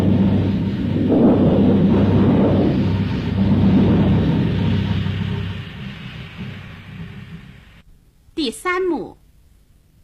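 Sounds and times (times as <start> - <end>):
deep rolling thunder rumble from a storm: 0.0 - 7.8
heavy rain: 0.0 - 7.8
speech: 8.4 - 9.2.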